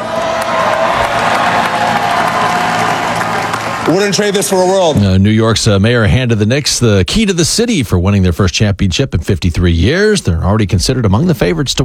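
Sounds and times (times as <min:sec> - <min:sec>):
huge parade crowd cheering and applauding: 0:00.0 - 0:05.0
speech: 0:03.9 - 0:11.8.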